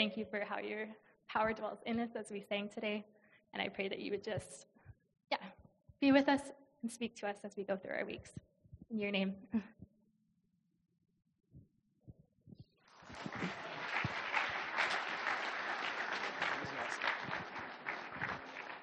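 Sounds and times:
speech: 0.0s - 4.7s, 5.3s - 9.8s
audience applause: 12.9s - 18.8s
laughter: 13.1s - 18.7s.

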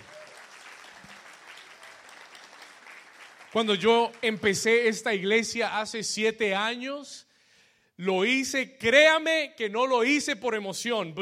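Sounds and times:
church audience applause: 0.0s - 4.3s
speech: 3.6s - 7.3s, 8.0s - 11.2s.

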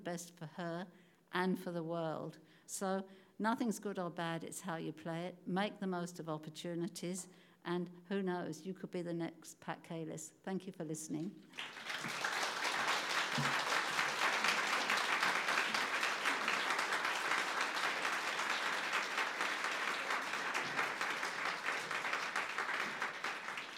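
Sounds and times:
speech: 0.0s - 12.3s
audience applause: 11.6s - 23.7s.

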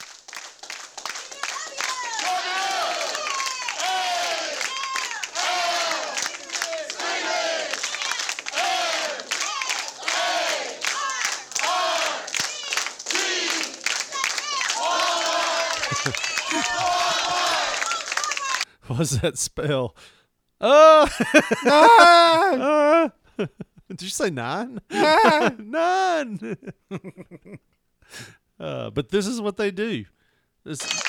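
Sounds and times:
employees cheering in downtown Los Angeles: 0.0s - 18.7s, 21.6s - 22.5s, 25.0s - 25.5s, 30.8s - 31.0s
laughter: 15.0s - 18.5s, 21.0s - 23.8s, 24.8s - 27.6s
speech: 19.0s - 31.0s.

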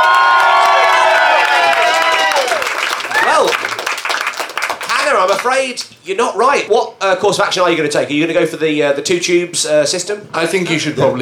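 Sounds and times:
audience applauding and cheering: 0.0s - 5.9s
speech: 5.6s - 11.2s.

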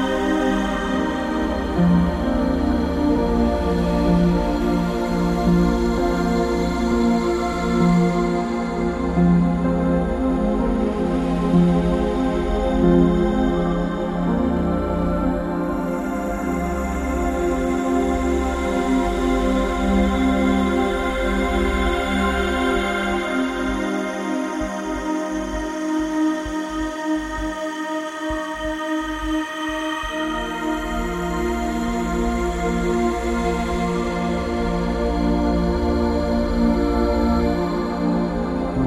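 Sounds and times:
ambient piano: 0.0s - 27.7s, 28.6s - 38.8s.

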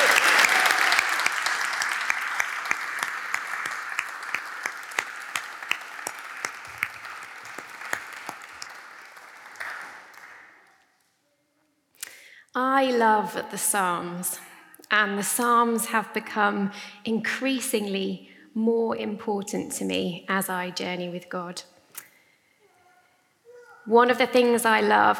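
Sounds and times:
audience applause: 0.0s - 10.7s
speech: 12.8s - 21.7s, 23.9s - 25.1s.

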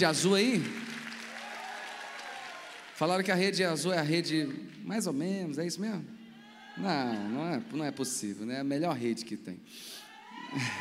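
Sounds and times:
speech: 0.0s - 0.8s, 3.0s - 6.2s, 6.8s - 10.8s
audience applause: 0.0s - 3.3s, 10.4s - 10.8s
laughter: 10.4s - 10.8s.

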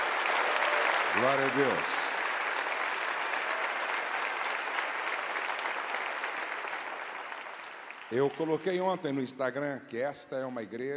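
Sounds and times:
audience applause: 0.0s - 8.7s
speech: 1.2s - 2.0s, 8.1s - 10.9s.

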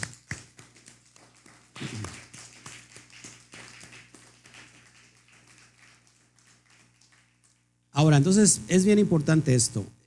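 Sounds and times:
applause: 0.0s - 7.7s
speech: 8.0s - 10.0s.

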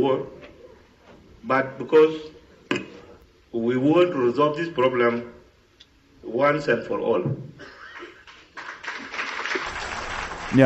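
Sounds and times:
speech: 0.0s - 0.4s, 1.4s - 2.8s, 3.5s - 5.4s, 6.2s - 7.8s
applause in parliament: 8.0s - 10.6s.

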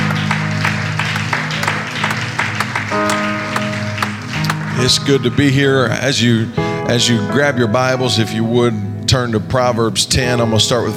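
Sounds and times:
audience clapping hands: 0.0s - 6.0s
speech: 4.8s - 10.9s.

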